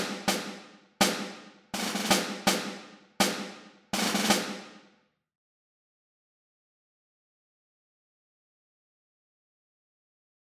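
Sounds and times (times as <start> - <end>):
music: 0.0 - 5.1.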